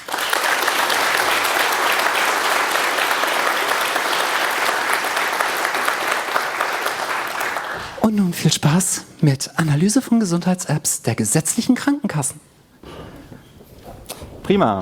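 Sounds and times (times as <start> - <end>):
audience applause: 0.0 - 8.1
speech: 8.1 - 12.5, 14.5 - 14.8.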